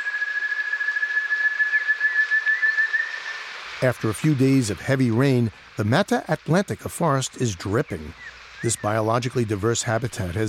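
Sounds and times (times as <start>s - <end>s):
ant thrush piercing high whistled call in Brazilian Mata Atlantica forest: 0.0s - 3.5s
hiss: 0.0s - 10.4s
speech: 3.8s - 10.4s.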